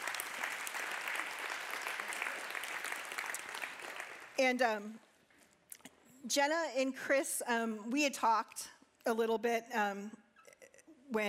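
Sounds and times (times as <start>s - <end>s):
audience clapping: 0.0s - 4.4s
speech: 4.4s - 5.1s, 6.2s - 10.2s.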